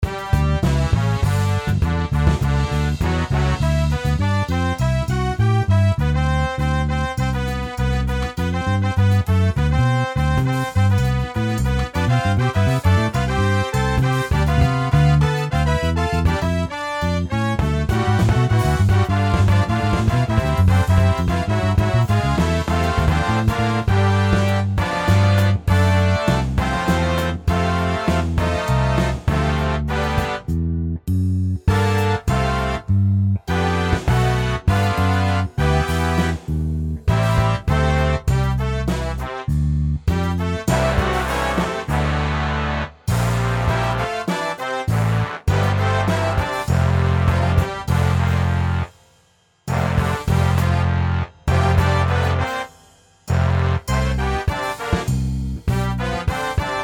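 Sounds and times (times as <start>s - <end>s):
brass instruments: 0.0s - 56.8s.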